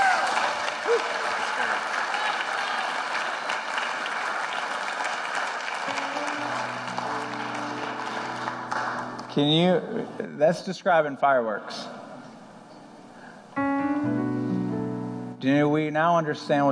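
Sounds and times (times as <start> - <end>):
audience applause: 0.0 - 9.4
sustained musical tones: 5.9 - 10.3, 13.6 - 16.7
speech: 9.4 - 12.0, 15.4 - 16.7.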